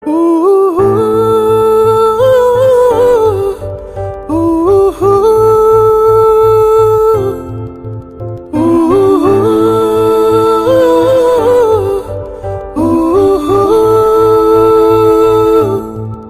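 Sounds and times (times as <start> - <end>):
female background music: 0.0 - 16.2.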